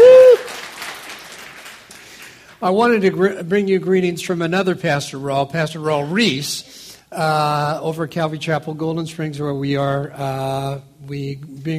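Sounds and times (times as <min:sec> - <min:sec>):
crowd whooping: 0:00.0 - 0:00.7
clapping and crowd noise: 0:00.0 - 0:02.6
speech: 0:02.6 - 0:11.7.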